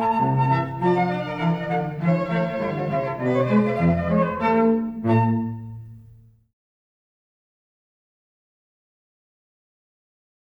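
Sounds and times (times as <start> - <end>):
flute: 0.0 - 5.9
violin: 0.0 - 6.3
cello: 0.0 - 6.4.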